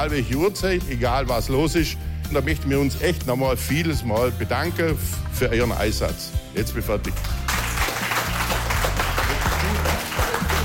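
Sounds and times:
speech: 0.0 - 7.4
audience applause: 7.2 - 10.6.

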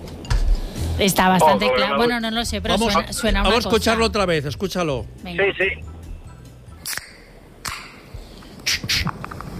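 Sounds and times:
speech: 1.0 - 5.9
beer can being opened: 6.8 - 9.5.

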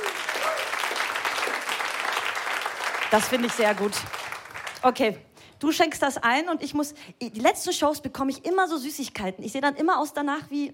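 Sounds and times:
audience applause at a show after a toast to Bulgarian-Turkish friendship: 0.0 - 4.8
speech: 3.1 - 4.2, 4.8 - 10.7.

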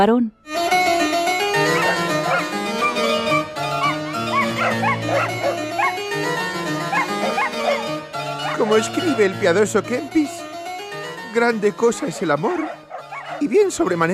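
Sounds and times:
speech: 0.0 - 0.8, 8.7 - 10.4, 11.4 - 12.8, 13.4 - 14.1
pack of dogs barking: 1.2 - 9.4, 11.8 - 13.9.

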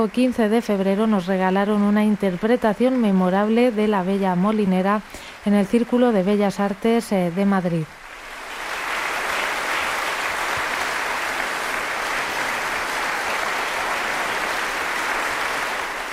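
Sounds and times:
speech: 0.0 - 8.0
concert audience applause: 8.0 - 16.1.

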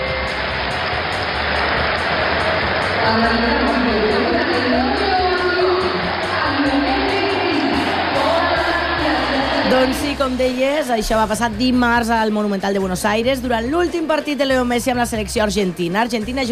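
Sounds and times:
stadium crowd ovation: 0.0 - 10.4
speech: 3.0 - 3.5, 9.7 - 16.5.

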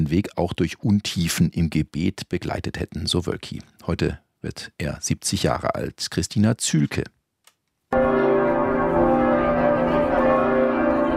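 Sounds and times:
speech: 0.0 - 7.2
church bells ringing outside cathedral: 7.9 - 11.1.

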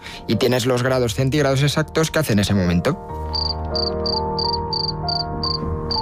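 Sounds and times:
speech: 0.2 - 3.9
cricket chirping: 3.4 - 6.0.

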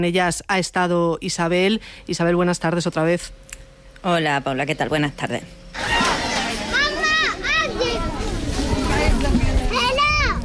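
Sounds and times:
speech: 0.0 - 6.0
steady outdoor din: 4.9 - 10.4
children shouting while playing on outdoor sports courts: 5.8 - 10.4.

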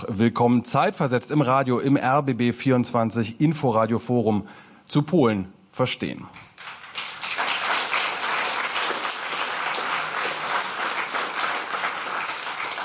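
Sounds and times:
speech: 0.0 - 6.5
packed hall audience applauding at an evening forum in a Berlin rooftop lounge: 6.6 - 12.8.

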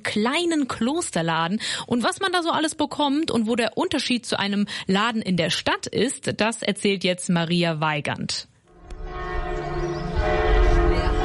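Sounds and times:
speech: 0.0 - 8.5
bells of Knechtsteden monastery ringing: 8.7 - 11.2.

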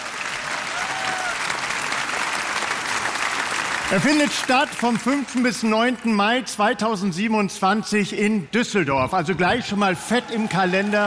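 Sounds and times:
applause: 0.0 - 6.6, 10.0 - 11.0
speech: 3.9 - 11.0.

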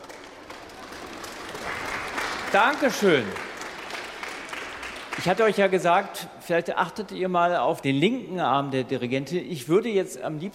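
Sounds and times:
orchestra applauding children: 0.0 - 6.1
speech: 2.5 - 3.4, 5.2 - 10.5.

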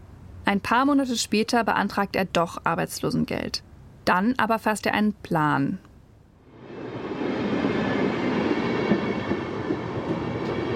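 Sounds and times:
speech: 0.5 - 5.9
train travelling on rails: 6.5 - 10.7.

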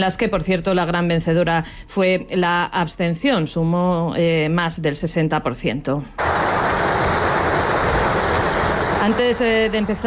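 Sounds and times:
speech: 0.0 - 6.3, 9.0 - 10.0
large crowd applauding the king: 6.2 - 9.8.

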